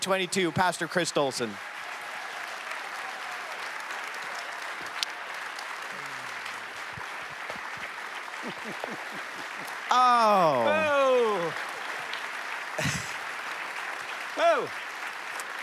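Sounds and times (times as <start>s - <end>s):
speech: 0.0s - 1.8s, 8.4s - 11.7s, 12.8s - 13.0s, 14.4s - 14.8s
audience standing ovation welcoming a pastor to the stage: 0.0s - 15.6s
laughter: 8.3s - 11.5s, 12.8s - 13.3s.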